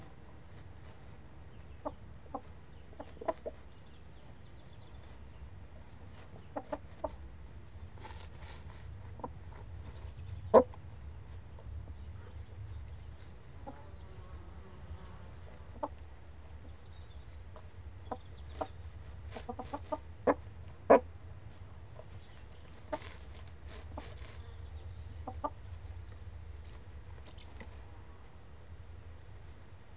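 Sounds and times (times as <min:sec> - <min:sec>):
scratching clicks and rustles on the ground: 0:00.0 - 0:29.8
chicken clucking: 0:01.5 - 0:10.8, 0:15.0 - 0:27.9.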